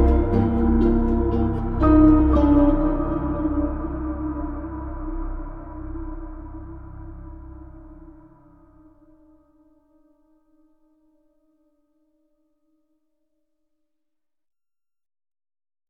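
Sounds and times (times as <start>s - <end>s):
ominous atmospheric electronic synth pads: 0.0s - 9.4s.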